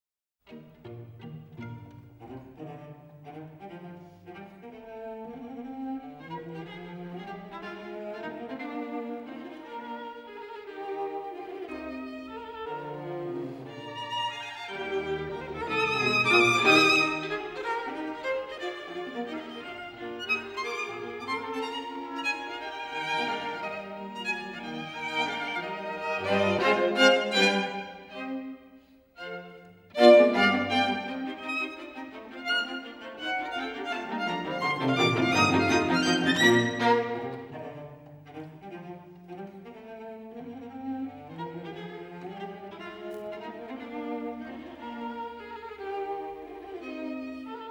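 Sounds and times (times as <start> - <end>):
string quartet playing: 0.5 - 47.6.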